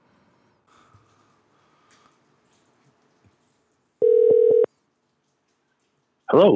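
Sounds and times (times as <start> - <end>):
telephone tone as call is dialed and rings out: 4.0 - 4.7.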